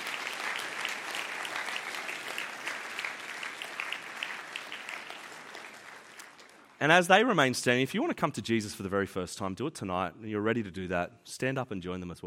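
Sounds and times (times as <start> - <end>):
applause from a sizable audience: 0.0 - 6.8
speech: 6.8 - 12.2.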